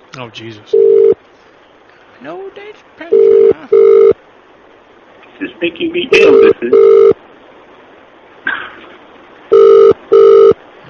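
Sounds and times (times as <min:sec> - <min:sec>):
speech: 0:00.2 - 0:01.1, 0:02.2 - 0:04.3, 0:05.4 - 0:07.1
telephone ringback tones: 0:00.8 - 0:01.2, 0:03.2 - 0:04.1, 0:06.3 - 0:07.2, 0:09.5 - 0:10.6.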